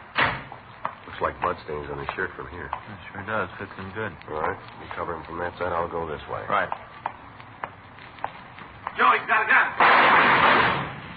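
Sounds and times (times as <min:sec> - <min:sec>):
speech: 0:01.2 - 0:06.9
gunshots in a radio drama shootout: 0:09.8 - 0:11.1.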